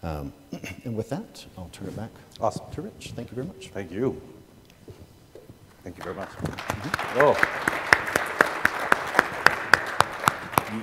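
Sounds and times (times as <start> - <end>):
speech: 0.0 - 4.4, 5.8 - 7.8
audience applause: 5.8 - 10.8.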